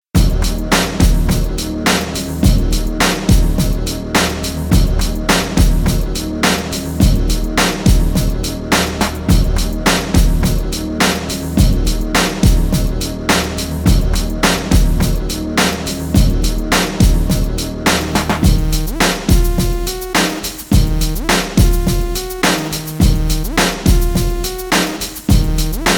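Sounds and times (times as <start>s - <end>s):
dub music loop at 105 bpm: 0.2s - 25.9s.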